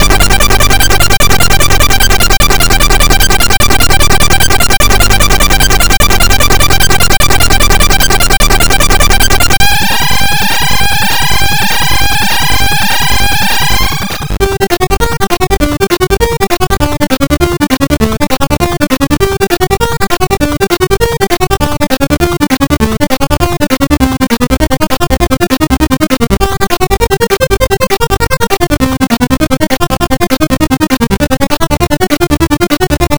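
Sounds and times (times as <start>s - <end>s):
C64 in-game music: 0.0s - 33.1s.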